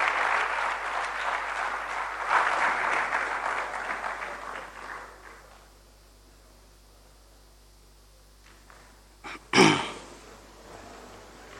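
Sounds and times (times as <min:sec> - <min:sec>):
crowd clapping at a convocation: 0:00.0 - 0:05.7.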